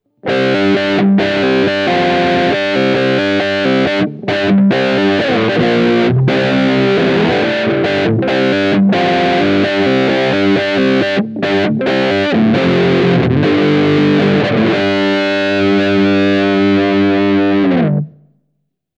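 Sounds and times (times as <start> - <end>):
Schecter C-1 Exotic electric guitar with both humbuckers on drive, tone zero: 0.0 - 18.3.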